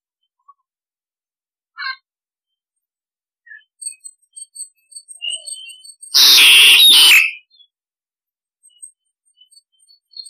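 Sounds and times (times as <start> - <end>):
starling harsh screech: 6.2 - 7.4.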